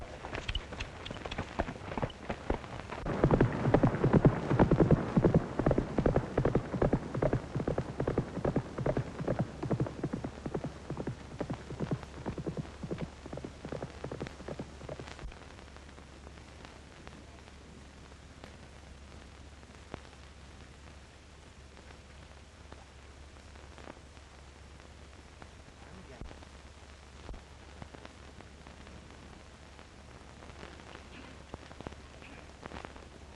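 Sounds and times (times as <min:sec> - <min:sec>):
hoofbeats of the racehorse Blue Knight breaking from the gate at a morning workout: 0:00.0 - 0:15.3
low hum: 0:00.0 - 0:33.3.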